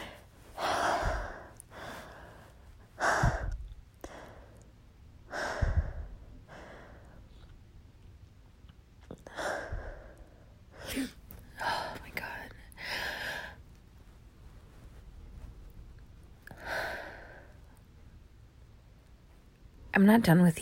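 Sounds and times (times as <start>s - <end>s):
heavy out-of-breath breathing: 0.0s - 7.5s, 9.2s - 12.1s, 16.4s - 17.8s
speech: 20.0s - 20.6s.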